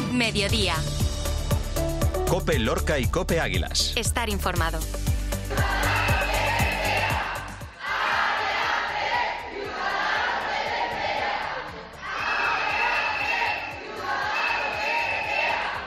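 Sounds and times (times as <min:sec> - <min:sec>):
speech: 0:00.2 - 0:01.0, 0:02.3 - 0:05.7
hospital workers chanting and shouting at a protest outside a hospital: 0:05.4 - 0:15.8.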